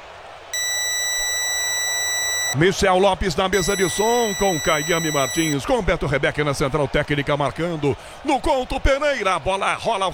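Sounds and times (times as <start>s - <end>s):
radio time signal beeps: 0.6s - 2.6s, 3.6s - 5.6s
speech: 2.5s - 10.1s.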